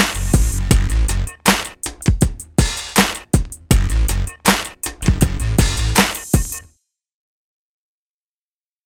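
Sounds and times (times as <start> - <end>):
swing music mix: 0.0 - 6.7.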